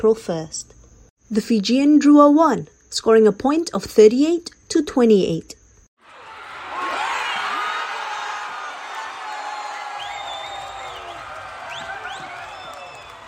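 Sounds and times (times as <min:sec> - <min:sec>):
speech: 0:00.0 - 0:05.6
rugby stadium crowd cheering: 0:06.0 - 0:13.2.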